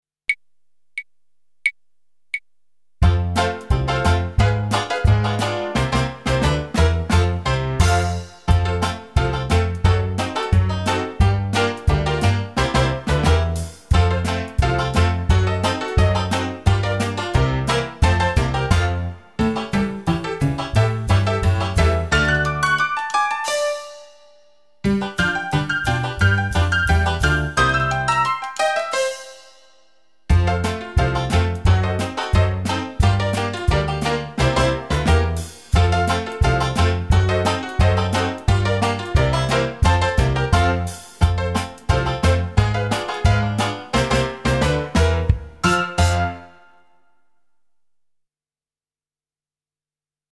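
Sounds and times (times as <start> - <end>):
ragtime music: 3.0 - 47.0.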